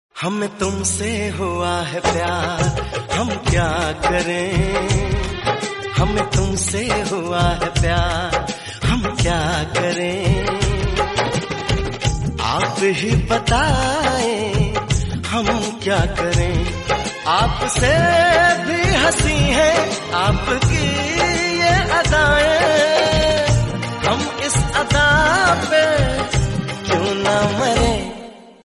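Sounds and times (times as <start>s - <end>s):
Hindi sad music: 0.7s - 28.6s.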